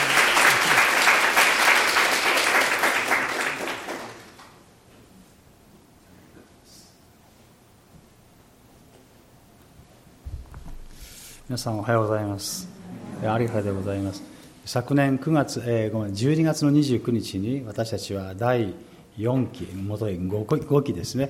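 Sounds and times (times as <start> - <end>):
audience applause: 0.0 - 4.6
speech: 11.6 - 21.2.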